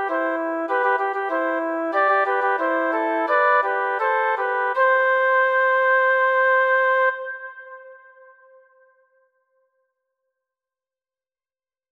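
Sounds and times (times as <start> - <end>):
flute: 0.0 - 9.4.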